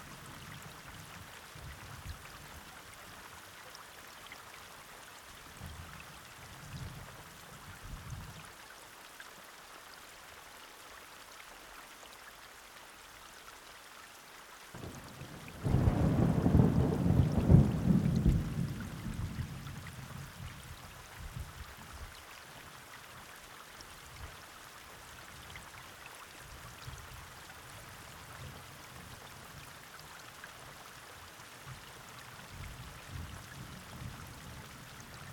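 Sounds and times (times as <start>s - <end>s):
thunderstorm: 15.5s - 19.7s.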